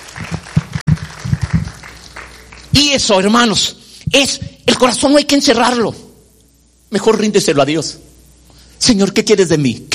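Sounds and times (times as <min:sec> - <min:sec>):
sparse audience clapping at a church gathering: 0:00.0 - 0:02.7
speech: 0:02.8 - 0:06.0, 0:06.9 - 0:08.1, 0:08.8 - 0:09.9.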